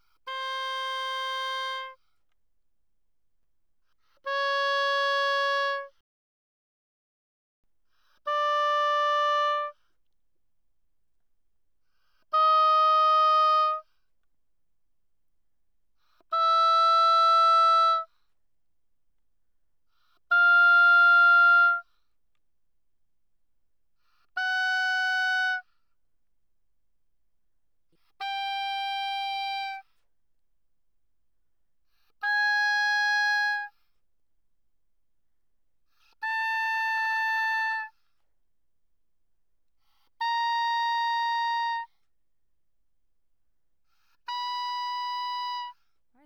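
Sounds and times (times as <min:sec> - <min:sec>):
oboe playing fortissimo notes from C5 to B5: 0:00.3 - 0:02.0, 0:04.3 - 0:05.9, 0:08.3 - 0:09.8, 0:12.4 - 0:13.8, 0:16.3 - 0:18.1, 0:20.3 - 0:21.9, 0:24.4 - 0:25.7, 0:28.2 - 0:29.8, 0:32.2 - 0:33.8, 0:36.2 - 0:38.0, 0:40.2 - 0:41.9, 0:44.2 - 0:45.8.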